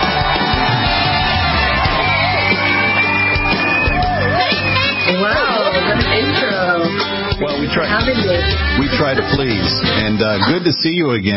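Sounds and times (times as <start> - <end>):
crowd yells: 0.0 - 5.9
audience cheering and shouting welcoming a speaker: 0.0 - 10.4
laughter: 5.2 - 6.4, 8.0 - 11.1
speech: 7.8 - 11.3.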